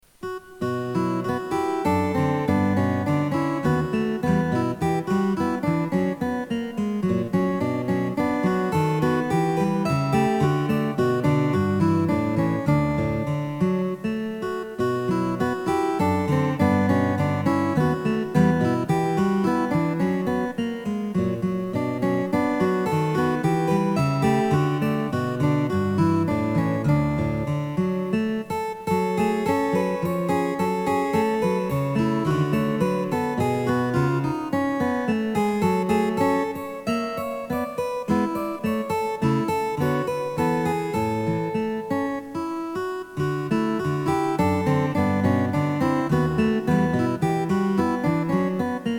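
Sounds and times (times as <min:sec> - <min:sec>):
guitar: 0:00.0 - 0:48.9.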